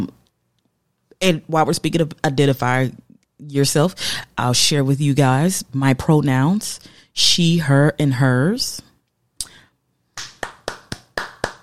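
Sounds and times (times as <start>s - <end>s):
speech: 1.2s - 8.9s
single person clapping hands: 10.2s - 11.6s.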